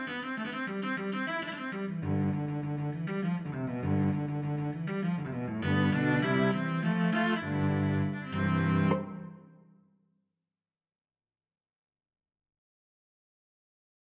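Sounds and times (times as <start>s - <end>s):
solo cello: 0.0s - 9.6s.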